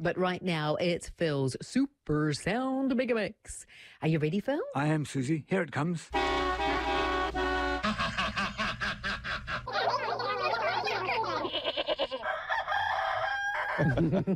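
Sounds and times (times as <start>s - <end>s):
speech: 0.0s - 6.5s, 13.8s - 14.3s
laughter: 7.6s - 12.2s, 13.8s - 14.3s
rooster crowing: 11.4s - 14.1s.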